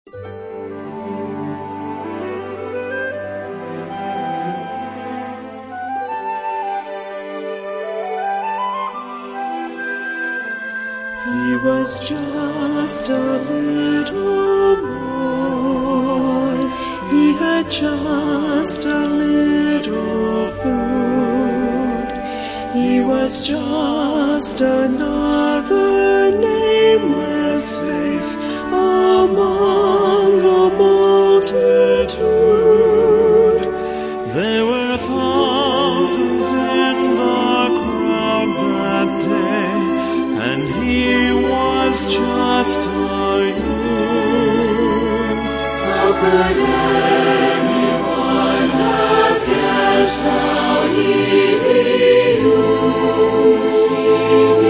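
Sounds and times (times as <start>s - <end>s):
orchestra playing: 0.2s - 54.6s
choir singing: 11.2s - 22.1s, 22.7s - 54.6s.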